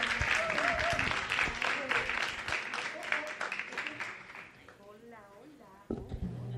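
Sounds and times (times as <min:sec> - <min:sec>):
audience applause: 0:00.0 - 0:04.7.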